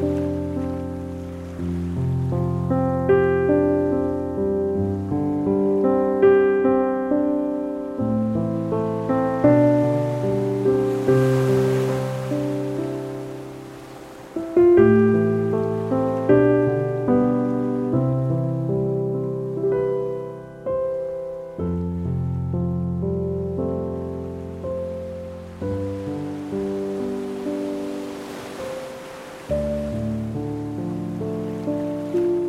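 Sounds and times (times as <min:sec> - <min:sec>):
ocean waves: 0:00.0 - 0:32.4
peaceful piano music: 0:00.0 - 0:32.4.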